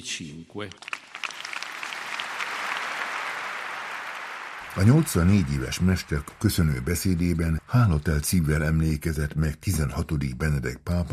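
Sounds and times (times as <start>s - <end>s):
speech: 0.0s - 1.0s, 4.7s - 11.1s
loud applause from a large audience: 0.7s - 8.9s.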